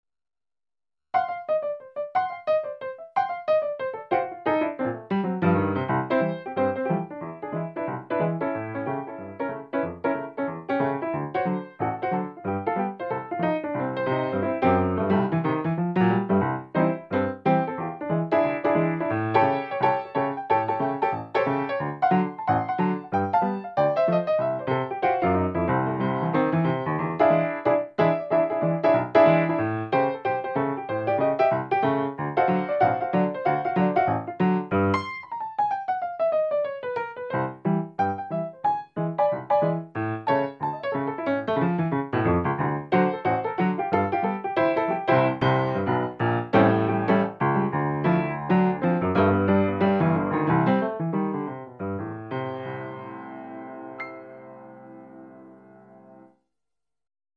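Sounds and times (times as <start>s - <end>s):
acoustic grand piano: 1.2s - 56.3s.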